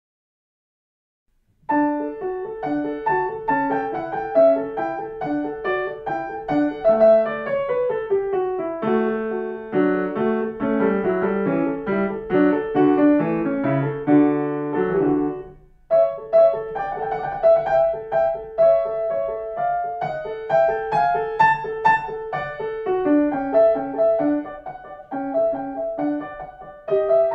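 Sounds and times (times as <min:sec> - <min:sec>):
allegro classical piece: 0:01.7 - 0:27.3.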